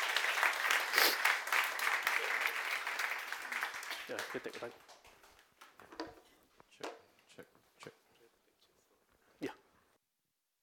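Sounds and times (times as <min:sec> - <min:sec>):
audience applause: 0:00.0 - 0:05.4
speech: 0:04.1 - 0:04.9.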